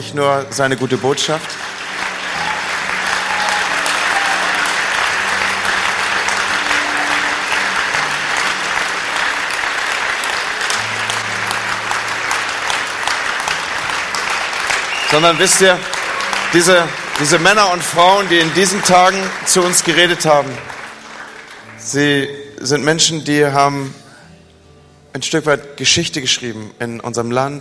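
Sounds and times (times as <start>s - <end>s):
speech: 0.0s - 1.8s, 15.1s - 20.8s, 21.9s - 24.0s, 25.2s - 27.5s
audience applause: 0.4s - 22.2s.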